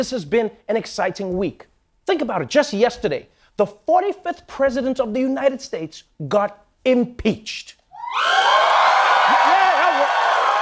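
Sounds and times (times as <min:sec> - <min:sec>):
speech: 0:00.0 - 0:08.7
audience cheering: 0:08.0 - 0:10.6.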